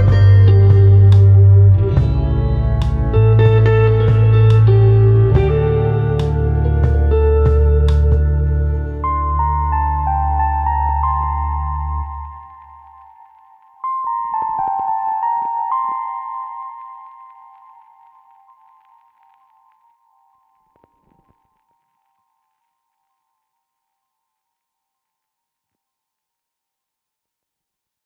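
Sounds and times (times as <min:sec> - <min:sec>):
lofi music: 0:00.0 - 0:20.0.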